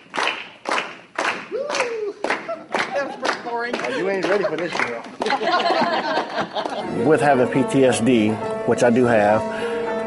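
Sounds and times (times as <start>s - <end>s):
slow hand claps during a group activity: 0.0s - 5.8s
laughter: 1.6s - 7.1s
speech: 3.0s - 9.8s.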